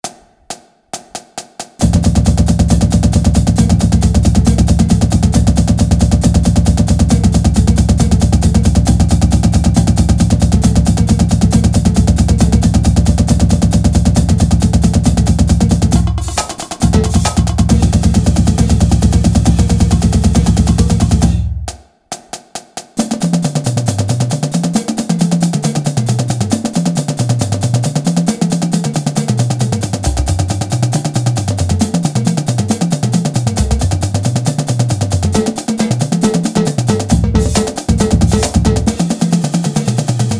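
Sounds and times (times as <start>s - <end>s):
drumline stick control exercise: 0.0s - 40.3s.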